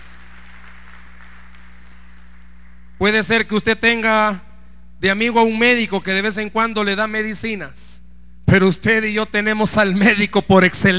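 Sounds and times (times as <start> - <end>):
audience applause: 0.0 - 2.8
low electrical hum: 0.0 - 10.9
speech: 3.0 - 10.9.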